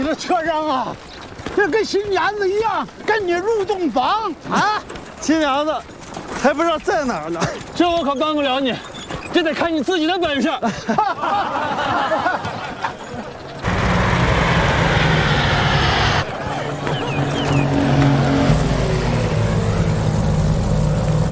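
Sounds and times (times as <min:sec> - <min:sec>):
speech: 0:00.0 - 0:12.5
laughter: 0:04.4 - 0:05.0, 0:07.3 - 0:08.0, 0:10.4 - 0:13.7, 0:14.8 - 0:19.9
propeller airplane engine approaching: 0:13.5 - 0:21.3.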